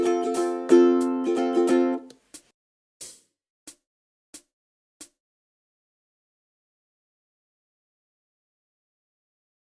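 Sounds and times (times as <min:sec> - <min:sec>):
ukulele strumming: 0:00.0 - 0:02.2.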